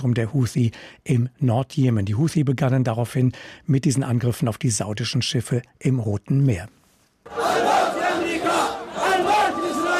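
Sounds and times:
speech: 0.0s - 7.5s
crowd chanting slogans at a rally: 7.3s - 9.9s.

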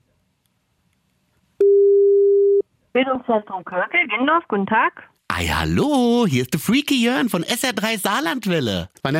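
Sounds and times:
telephone ringing tone of outgoing call: 1.6s - 2.6s
speech: 3.0s - 9.1s.

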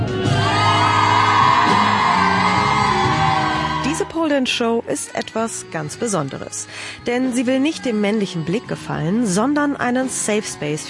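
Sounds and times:
young women cheering on a dancer: 0.2s - 4.5s
speech: 4.3s - 10.8s.

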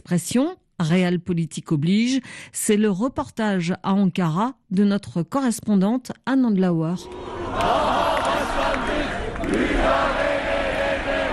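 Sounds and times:
speech: 0.1s - 8.1s
opposition party activists shouting in anger: 7.0s - 11.3s.

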